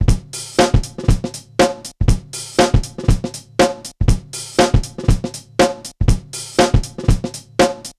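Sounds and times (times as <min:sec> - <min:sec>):
music beat: 0:00.0 - 0:07.9.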